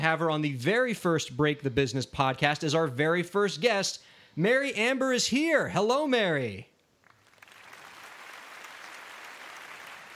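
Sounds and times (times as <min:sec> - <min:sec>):
speech: 0:00.0 - 0:06.7
studio audience applause greeting a guest on a show: 0:07.1 - 0:10.1.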